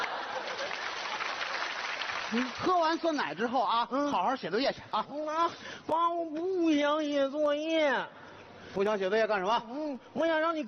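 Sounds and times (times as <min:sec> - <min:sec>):
applause of many hands clapping: 0:00.0 - 0:03.2
speech: 0:02.3 - 0:10.6.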